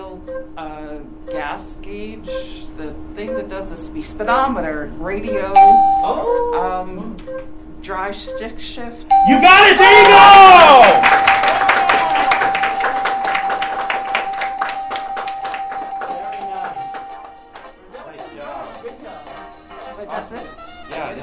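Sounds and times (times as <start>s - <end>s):
speech: 0.2s - 11.3s
audience applause: 10.0s - 17.7s.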